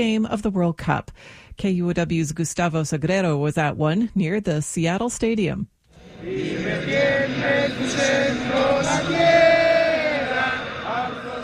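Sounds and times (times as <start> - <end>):
speech: 0.0 - 9.6
large crowd singing a national anthem: 6.0 - 11.4.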